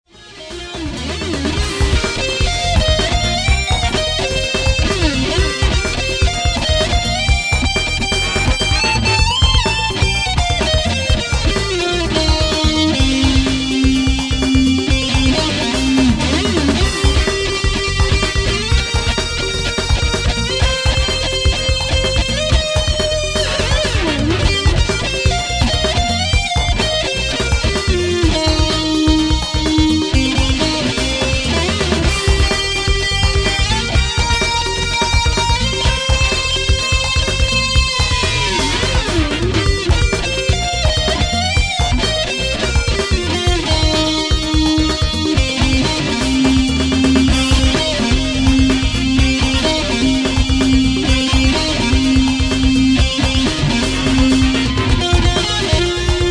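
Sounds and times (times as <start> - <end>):
funk music: 0.0 - 56.3.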